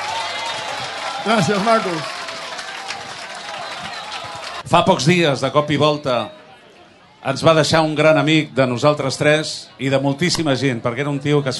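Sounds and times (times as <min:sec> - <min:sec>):
crowd applauding: 0:00.0 - 0:04.7
speech: 0:01.2 - 0:02.1, 0:04.7 - 0:06.4, 0:07.2 - 0:11.5.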